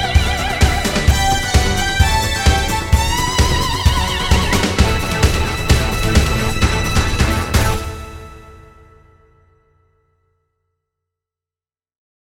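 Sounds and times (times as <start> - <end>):
contemporary dance music on Technics SX-WSA1R: 0.0 - 8.2.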